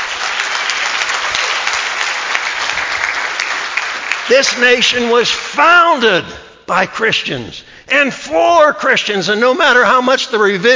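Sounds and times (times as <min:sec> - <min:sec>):
audience clapping hands: 0:00.0 - 0:05.4
speech: 0:04.3 - 0:10.7.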